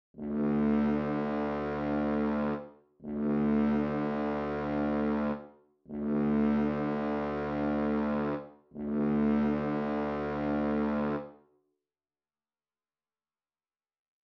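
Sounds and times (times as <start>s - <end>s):
French horns: 0.2s - 11.3s.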